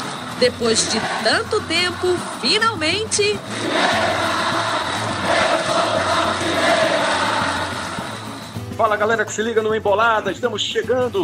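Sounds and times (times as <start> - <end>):
football crowd cheering and shouting: 0.0 - 8.6
speech: 0.4 - 4.7, 8.8 - 11.2.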